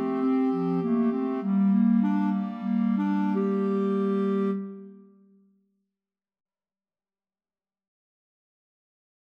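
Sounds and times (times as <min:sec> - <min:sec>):
clarinet choir: 0:00.0 - 0:05.1.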